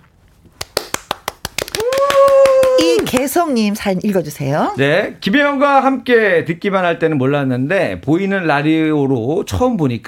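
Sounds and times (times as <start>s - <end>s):
clapping: 0.6s - 3.3s
speech: 2.8s - 10.0s.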